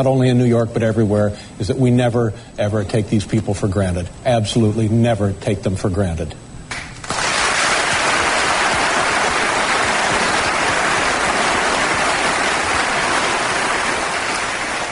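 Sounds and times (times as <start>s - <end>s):
speech: 0.0s - 6.4s
audience applause: 7.0s - 14.9s.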